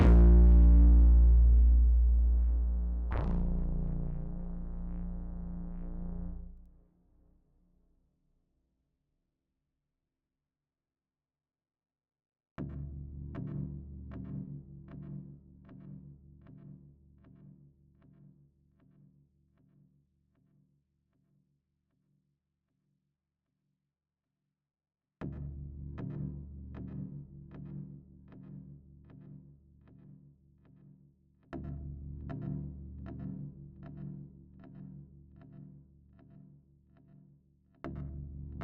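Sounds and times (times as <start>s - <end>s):
bass: 0.0s - 6.9s, 12.6s - 17.4s, 25.2s - 30.1s, 31.5s - 37.1s, 37.8s - 38.6s.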